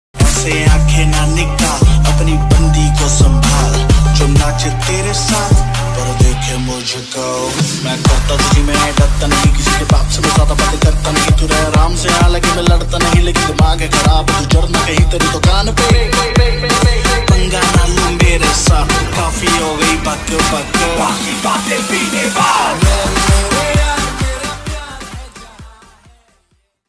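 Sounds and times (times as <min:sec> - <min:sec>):
rap ringtone: 0:00.2 - 0:26.4.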